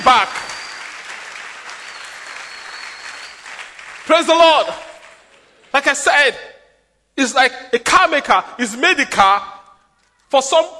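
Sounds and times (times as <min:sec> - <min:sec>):
crowd clapping: 0:00.0 - 0:05.9
speech: 0:04.1 - 0:04.9, 0:05.7 - 0:06.5, 0:07.2 - 0:09.5, 0:10.3 - 0:10.7.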